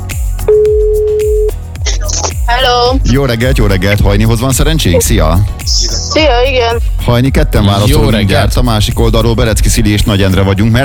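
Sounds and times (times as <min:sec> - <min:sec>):
telephone ringback tone as a breakfast radio show calls a listener: 0:00.5 - 0:01.5
speech: 0:02.6 - 0:10.8.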